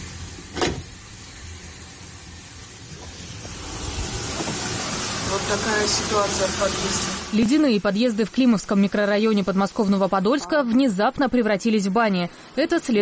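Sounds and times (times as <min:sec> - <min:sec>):
water gushing from burst pipes: 0:00.0 - 0:10.3
speech: 0:05.5 - 0:12.9.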